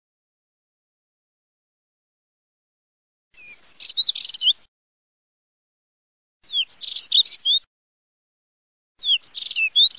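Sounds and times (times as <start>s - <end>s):
Spectacled warbler song: 3.3s - 4.7s, 6.4s - 7.7s, 9.0s - 9.9s.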